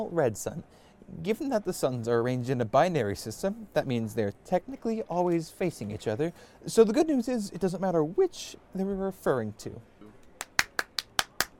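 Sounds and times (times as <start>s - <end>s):
speech: 0.0s - 9.9s
hand clapping: 10.2s - 11.5s.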